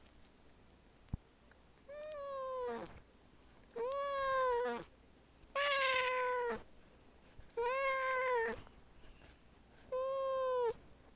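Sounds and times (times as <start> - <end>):
dying cat: 3.8 - 4.9, 5.5 - 6.6, 7.6 - 8.6, 9.9 - 10.8.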